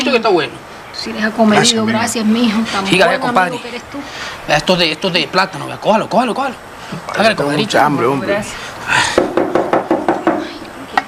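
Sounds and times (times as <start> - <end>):
speech: 0.1 - 9.2
knocking on a door: 9.2 - 10.5.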